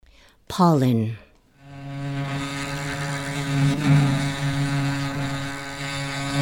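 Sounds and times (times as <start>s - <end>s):
speech: 0.5s - 1.2s, 3.8s - 4.2s
bumblebees buzzing: 1.6s - 6.4s.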